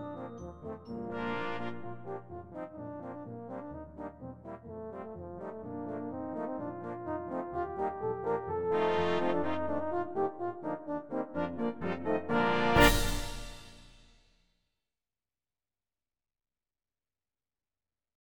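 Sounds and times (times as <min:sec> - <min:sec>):
brass band playing: 0:00.0 - 0:13.9.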